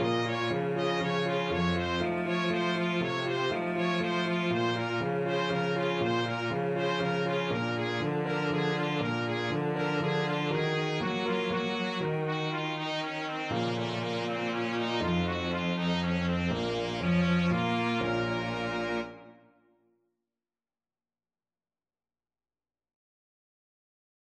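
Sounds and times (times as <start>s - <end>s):
cello: 0.0s - 19.5s
piano: 0.0s - 19.5s
trumpet: 0.0s - 19.7s.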